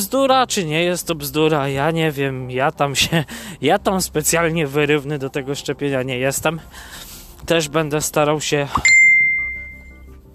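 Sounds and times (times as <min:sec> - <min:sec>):
speech: 0:00.0 - 0:08.9
Facebook Messenger message notification chime: 0:08.8 - 0:10.1.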